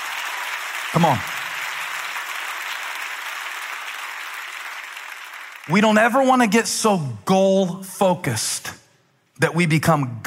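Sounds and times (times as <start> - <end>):
audience clapping hands: 0.0 - 6.6
speech: 0.9 - 1.3, 5.7 - 8.8, 9.4 - 10.2.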